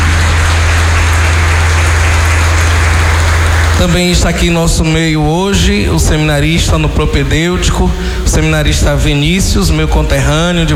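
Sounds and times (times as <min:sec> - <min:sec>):
audience applauding: 0:00.0 - 0:04.5
speech: 0:03.8 - 0:10.7.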